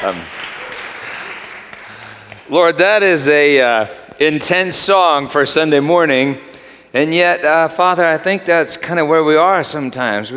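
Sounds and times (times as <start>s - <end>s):
speech: 0.0s - 0.5s, 2.5s - 10.3s
audience clapping: 0.0s - 3.0s.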